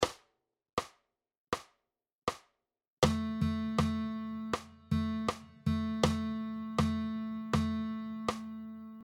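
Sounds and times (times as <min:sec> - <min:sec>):
rhythm dictation exercises: 0:03.0 - 0:09.0.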